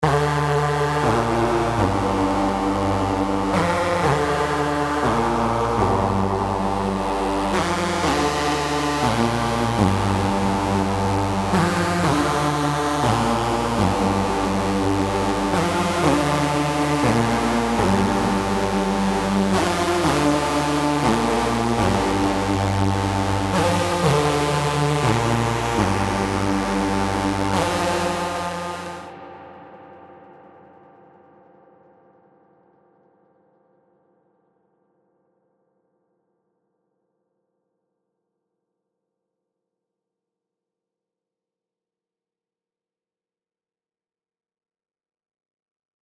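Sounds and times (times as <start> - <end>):
drum and bass music: 0.0 - 29.1.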